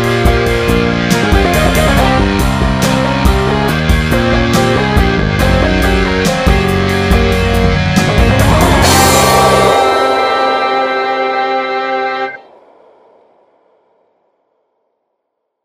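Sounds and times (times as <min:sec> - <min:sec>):
metal music: 0:00.0 - 0:11.9.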